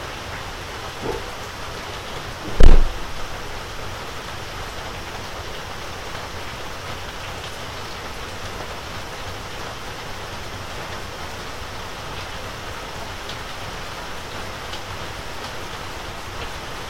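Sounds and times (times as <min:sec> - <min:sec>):
steady rain on an evening before a typhoon: 0:00.0 - 0:16.8
soft tap and sharp knock: 0:02.4 - 0:03.1.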